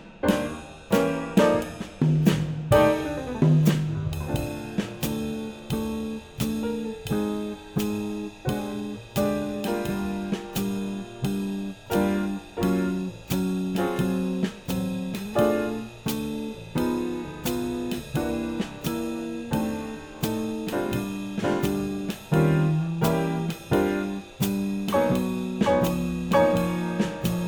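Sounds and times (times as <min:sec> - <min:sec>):
muted swing bass: 0:00.0 - 0:27.4.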